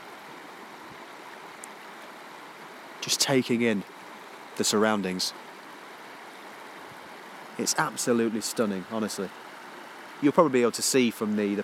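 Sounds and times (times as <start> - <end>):
river flowing: 0.0 - 11.6
speech: 3.0 - 3.9, 4.6 - 5.4, 7.6 - 9.5, 10.2 - 11.6.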